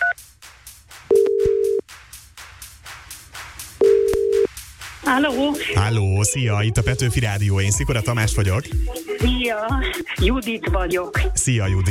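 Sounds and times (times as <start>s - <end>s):
telephone ringing tone as a radio host calls a listener: 1.1s - 1.8s, 3.8s - 4.5s
speech: 5.1s - 11.8s.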